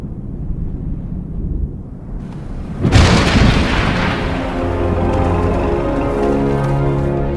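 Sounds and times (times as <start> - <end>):
thunder crack and rumble in thunderstorm: 0.0 - 6.3
sustained tones: 2.3 - 7.3.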